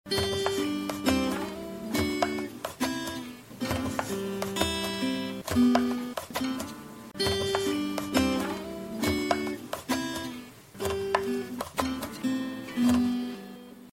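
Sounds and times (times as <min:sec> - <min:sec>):
guitar mix: 0:00.1 - 0:13.9.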